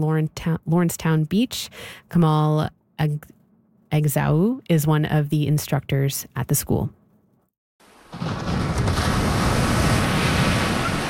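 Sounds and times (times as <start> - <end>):
speech: 0.0 - 7.0
ocean surf breaking onto a beach: 7.8 - 11.0
wind rushing: 8.1 - 11.0.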